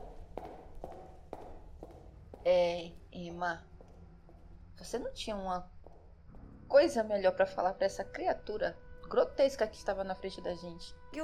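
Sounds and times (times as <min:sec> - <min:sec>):
footsteps walking away down an open corridor: 0:00.0 - 0:06.6
low constant hum: 0:00.0 - 0:11.2
speech: 0:02.4 - 0:03.7, 0:04.8 - 0:05.7, 0:06.7 - 0:11.2.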